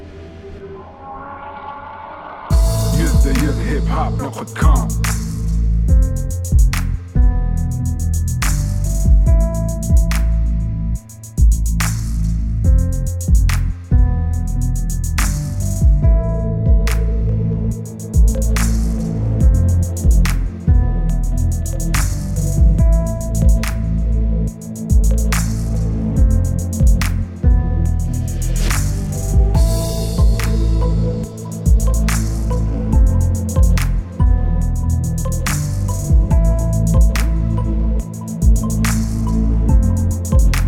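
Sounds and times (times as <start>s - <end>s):
beat: 2.5s - 40.6s.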